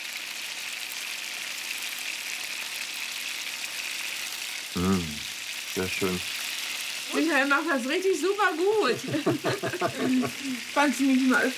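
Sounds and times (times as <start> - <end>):
beef roulades searing in clarified butter: 0.0 - 11.5
speech: 4.8 - 5.2, 5.8 - 6.4, 7.1 - 11.5
laughter: 8.7 - 10.7.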